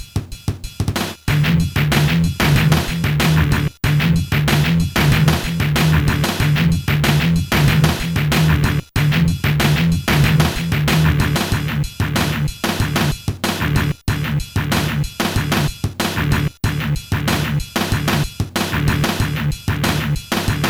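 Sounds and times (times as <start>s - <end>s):
instrumental music: 0.0s - 20.6s.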